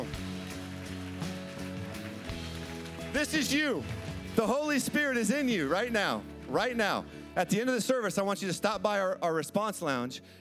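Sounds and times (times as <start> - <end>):
audience applauding: 0.0 - 6.1
speech: 3.1 - 10.3.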